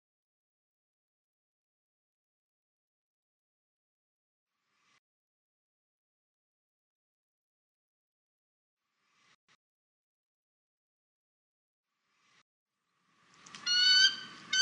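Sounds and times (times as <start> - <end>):
bald eagle chatter: 13.6 - 14.6.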